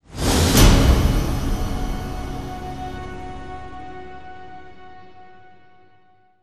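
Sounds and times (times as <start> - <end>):
full percussion sting: 0.1 - 5.2.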